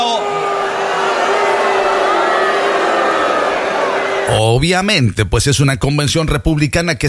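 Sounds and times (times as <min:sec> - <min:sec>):
convention crowd booing a protester at a Republican convention: 0:00.0 - 0:04.6
speech: 0:04.3 - 0:07.0.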